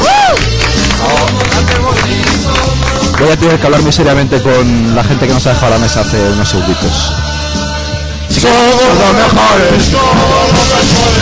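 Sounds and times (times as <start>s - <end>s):
applause: 0.0s - 3.6s
speech: 3.2s - 7.3s, 8.3s - 11.2s.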